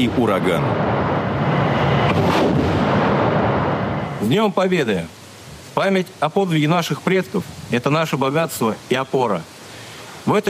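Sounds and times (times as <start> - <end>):
speech: 0.0 - 1.2, 4.2 - 5.2, 5.8 - 9.5, 10.2 - 10.4
artillery fire: 0.6 - 4.2.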